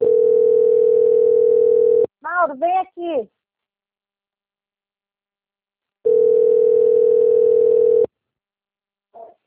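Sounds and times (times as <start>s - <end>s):
telephone ringing with electronic tone: 0.0s - 2.1s, 6.0s - 8.1s
speech: 2.5s - 3.4s.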